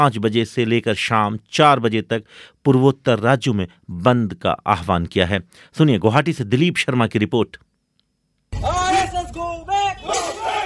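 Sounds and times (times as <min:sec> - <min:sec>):
speech: 0:00.0 - 0:07.7
protesters in Assam chanting: 0:08.6 - 0:10.6.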